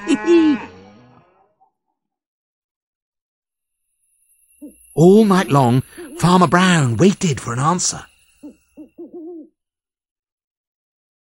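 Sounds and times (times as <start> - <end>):
cow mooing: 0.0 - 1.7
speech: 0.1 - 0.7, 5.0 - 8.1.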